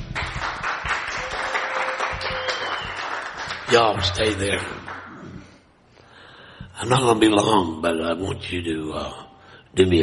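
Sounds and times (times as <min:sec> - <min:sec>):
church congregation clapping during worship: 0:00.0 - 0:05.4
speech: 0:03.7 - 0:04.8, 0:06.8 - 0:09.2, 0:09.8 - 0:10.0.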